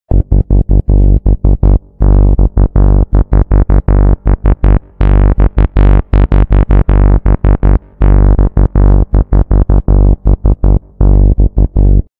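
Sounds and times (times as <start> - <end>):
melting bass sound: 0.1 - 12.1.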